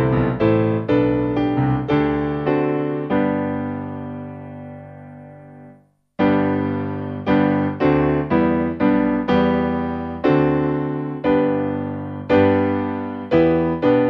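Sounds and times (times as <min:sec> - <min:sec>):
traditional hymn played on piano: 0:00.0 - 0:14.0.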